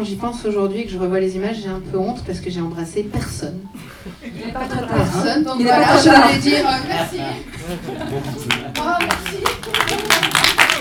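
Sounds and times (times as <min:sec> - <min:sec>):
speech: 0:00.0 - 0:10.2
laughter: 0:03.8 - 0:10.8
audience applause: 0:07.7 - 0:10.8.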